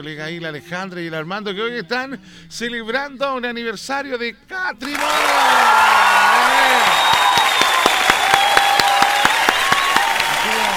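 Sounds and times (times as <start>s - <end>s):
speech: 0.0s - 7.1s
crowd applause: 4.8s - 10.7s
whoops and cheering: 4.9s - 10.7s.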